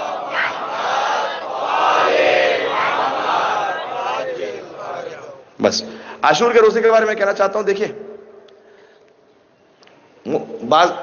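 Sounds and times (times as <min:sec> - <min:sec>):
religious congregation loudly chanting the salawat in unison: 0:00.0 - 0:05.6
speech: 0:05.6 - 0:08.0, 0:10.3 - 0:11.0.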